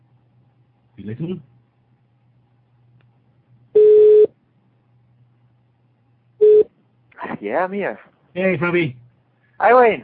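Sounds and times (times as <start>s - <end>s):
faint low hum: 0.0s - 10.0s
speech: 1.0s - 1.5s, 7.4s - 9.0s, 9.6s - 10.0s
phone line tone as a call goes through: 3.8s - 4.3s, 6.4s - 6.7s.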